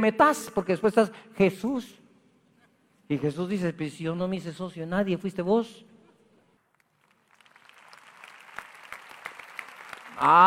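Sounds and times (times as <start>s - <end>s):
speech: 0.0s - 2.0s, 3.1s - 5.9s, 10.2s - 10.4s
weak audience applause: 6.8s - 10.4s.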